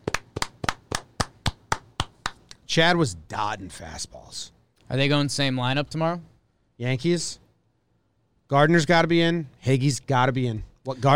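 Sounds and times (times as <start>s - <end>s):
single hand claps as praise for baseball players after a Yankees win: 0.0s - 2.6s
speech: 2.7s - 7.4s, 8.5s - 11.1s.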